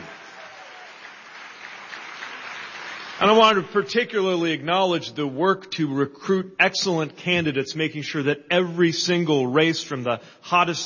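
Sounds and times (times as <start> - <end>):
audience applause: 0.0 - 3.6
speech: 3.2 - 10.8.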